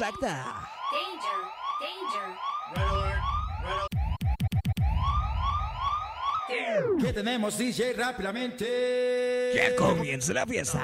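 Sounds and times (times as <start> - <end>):
speech: 0.0 - 3.9, 6.5 - 10.8
alarm siren sound effect with rising electronic sweeps: 0.0 - 7.1.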